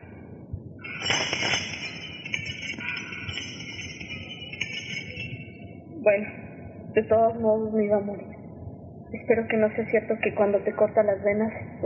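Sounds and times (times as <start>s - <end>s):
glass breaking: 0.9s - 3.6s
speech: 6.1s - 8.4s, 9.1s - 11.8s.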